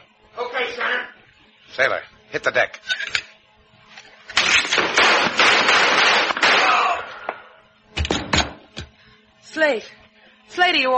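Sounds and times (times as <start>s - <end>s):
speech: 1.8s - 3.1s, 9.6s - 10.0s, 10.6s - 10.9s
gunshots: 4.4s - 7.4s.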